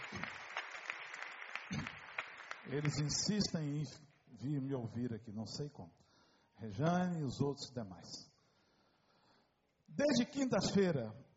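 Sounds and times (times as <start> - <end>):
applause: 0.0 - 4.7
speech: 2.7 - 8.3, 9.9 - 11.3.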